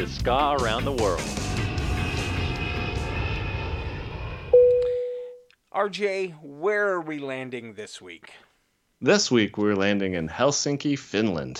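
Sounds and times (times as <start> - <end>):
speech: 0.0 - 1.6, 5.8 - 8.4, 9.0 - 11.5
airplane engine droning inside the cabin during flight: 1.1 - 5.1
sustained electronic chime tone: 4.5 - 5.5.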